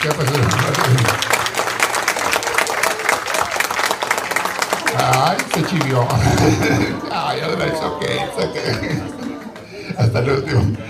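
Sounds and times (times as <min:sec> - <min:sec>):
speech: 0:00.0 - 0:00.6, 0:05.6 - 0:10.8
laughter: 0:00.0 - 0:01.5, 0:04.7 - 0:10.8
applause: 0:00.0 - 0:06.9, 0:08.6 - 0:09.7.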